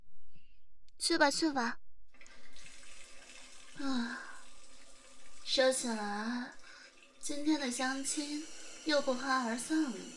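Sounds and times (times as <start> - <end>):
speech: 1.0 - 1.8, 3.8 - 4.2, 5.5 - 6.6, 7.2 - 10.1
running water: 2.2 - 10.1.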